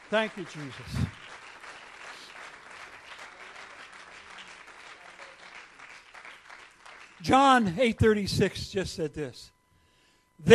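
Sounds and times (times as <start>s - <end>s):
audience clapping hands: 0.0s - 8.2s
speech: 0.1s - 1.2s, 7.2s - 9.6s, 10.4s - 10.5s.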